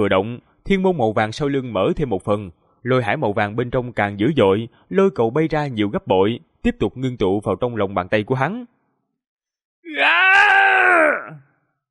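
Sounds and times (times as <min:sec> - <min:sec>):
speech: 0:00.0 - 0:08.8
man screaming in pain: 0:09.9 - 0:11.4.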